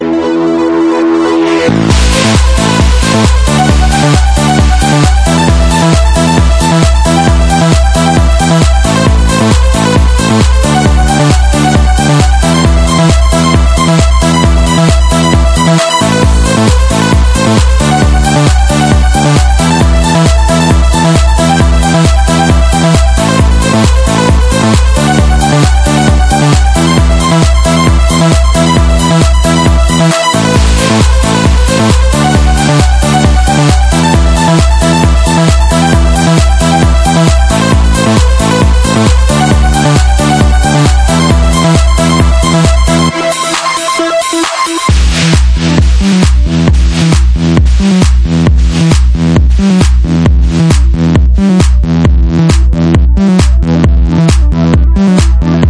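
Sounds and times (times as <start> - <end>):
instrumental disco mix: 0.0 - 55.6.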